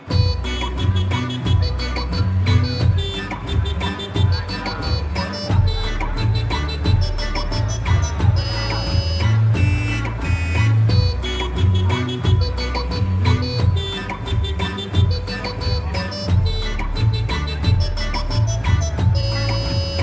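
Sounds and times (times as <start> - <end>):
car remix ringtone: 0.1 - 20.0.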